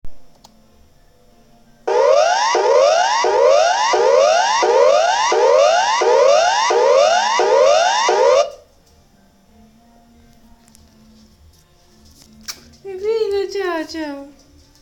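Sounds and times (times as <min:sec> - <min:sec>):
alarm: 0:01.9 - 0:08.6.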